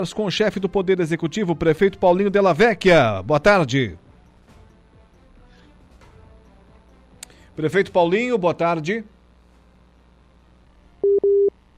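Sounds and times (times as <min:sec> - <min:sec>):
speech: 0:00.0 - 0:04.0, 0:07.6 - 0:09.1
telephone busy tone after a dropped call: 0:11.0 - 0:11.5.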